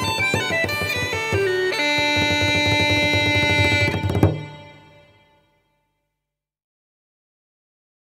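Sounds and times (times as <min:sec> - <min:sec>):
instrumental folk music: 0:00.0 - 0:06.1.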